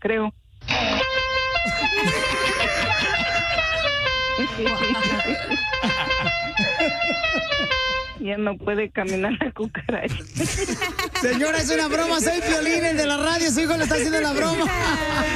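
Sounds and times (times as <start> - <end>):
speech: 0.0 - 0.9, 4.4 - 15.3
loud brassy musical horn honking a rapid tune: 0.7 - 8.2
laughter: 1.6 - 8.1, 9.8 - 12.8, 13.6 - 15.3.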